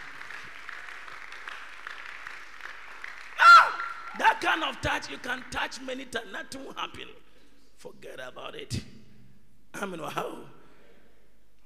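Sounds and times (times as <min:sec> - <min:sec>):
audience clapping: 0:00.0 - 0:06.1
speech: 0:04.4 - 0:08.9, 0:09.7 - 0:10.6.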